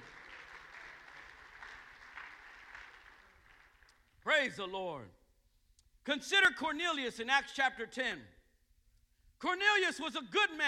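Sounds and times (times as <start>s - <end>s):
crowd clapping: 0.0s - 4.2s
speech: 4.4s - 5.2s, 6.1s - 8.4s, 9.4s - 10.6s.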